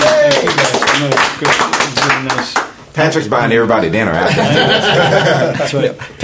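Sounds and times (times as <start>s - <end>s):
audience applause: 0.0s - 2.6s
speech: 1.4s - 1.6s, 3.0s - 6.2s
laughter: 4.2s - 6.2s.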